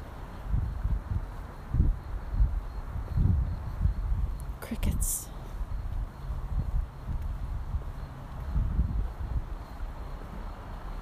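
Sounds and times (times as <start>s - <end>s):
gusty night wind outdoors: 0.0s - 11.0s
speech: 4.7s - 5.3s.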